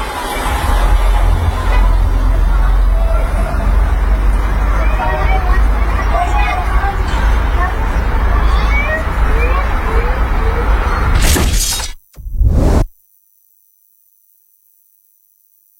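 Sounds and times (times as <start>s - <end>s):
road rumble recorded on a dashcam: 0.0s - 12.9s
crunching noise: 11.0s - 12.9s
car crash impact recorded on a dashcam: 11.1s - 12.0s.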